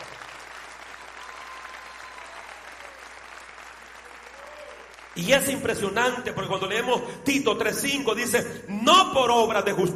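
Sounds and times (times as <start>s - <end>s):
crowd applause: 0.0s - 5.9s
speech: 5.2s - 9.9s.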